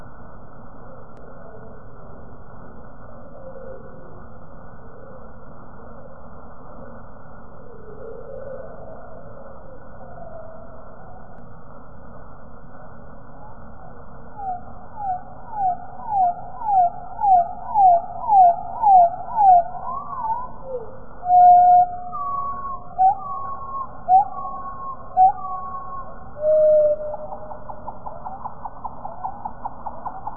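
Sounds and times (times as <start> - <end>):
birdsong slowed to 15 percent in Portnoo Donegal Ireland: 13.4 - 30.3.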